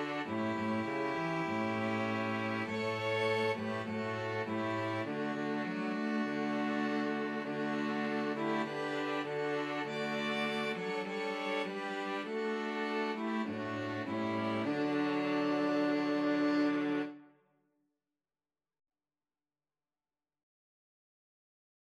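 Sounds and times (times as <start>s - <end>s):
string quartet: 0.0s - 17.2s.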